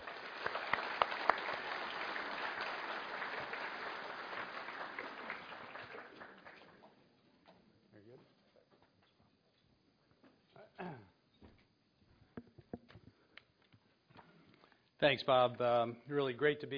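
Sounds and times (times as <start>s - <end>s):
audience applause welcoming a speaker at a Naples event: 0.0s - 7.0s
speech: 15.0s - 16.7s.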